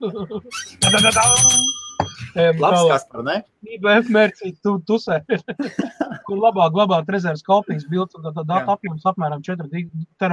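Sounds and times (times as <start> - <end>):
laughter: 0.0 - 0.9, 5.3 - 6.3
speech: 0.0 - 10.3
bell ringing: 0.8 - 2.8.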